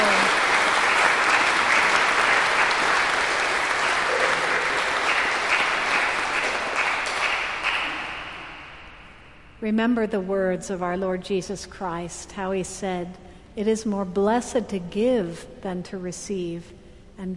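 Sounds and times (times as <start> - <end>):
church congregation applause honoring a 92-year-old member: 0.0 - 8.7
speech: 9.7 - 17.3.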